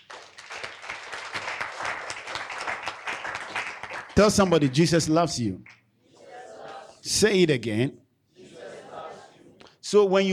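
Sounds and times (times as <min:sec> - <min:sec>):
audience clapping: 0:00.0 - 0:06.8
speech: 0:04.2 - 0:05.8, 0:07.0 - 0:08.0, 0:09.9 - 0:10.3.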